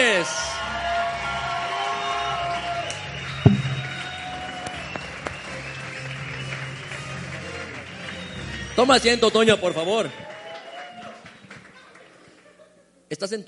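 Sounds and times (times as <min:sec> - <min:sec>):
audience applause welcoming a guest: 0:00.8 - 0:08.2, 0:10.2 - 0:12.1
speech: 0:08.8 - 0:10.3, 0:13.2 - 0:13.4.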